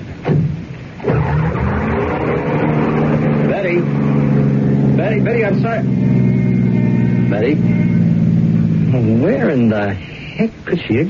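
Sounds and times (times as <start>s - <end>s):
car engine roaring to life and pulling away: 0.2s - 10.0s
tires skidding: 1.0s - 9.6s
speech: 5.2s - 6.3s, 7.3s - 7.9s, 8.9s - 11.0s.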